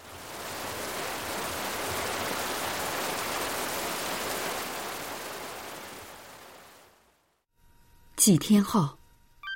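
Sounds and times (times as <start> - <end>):
heavy rain: 0.0 - 7.4
speech: 8.2 - 9.0.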